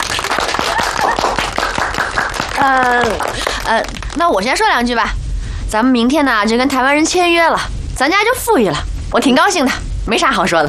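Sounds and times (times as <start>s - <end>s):
group clapping: 0.0s - 4.4s
speech: 2.6s - 10.6s.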